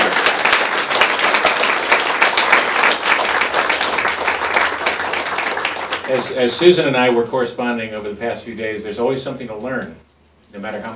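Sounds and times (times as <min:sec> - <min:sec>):
audience applause: 0:00.0 - 0:06.4
speech: 0:06.1 - 0:10.9.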